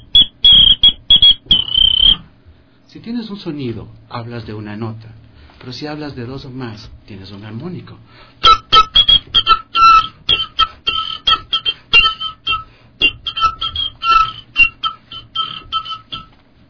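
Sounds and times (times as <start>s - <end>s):
whistle instrument imitating a penguin: 0.0s - 2.3s, 8.4s - 16.3s
speech: 2.9s - 8.6s.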